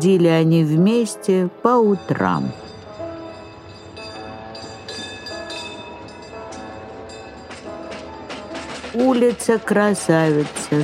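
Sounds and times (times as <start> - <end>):
speech: 0.0 - 2.6, 9.0 - 10.8
tram rolling along rails: 0.0 - 10.8
tram wheels clanking over track joints: 3.7 - 10.8.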